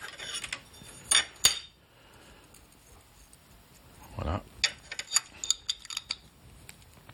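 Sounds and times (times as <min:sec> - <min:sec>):
metal washers clinking while a stomp switch is installed on a lid: 0:00.0 - 0:01.8, 0:04.6 - 0:06.3.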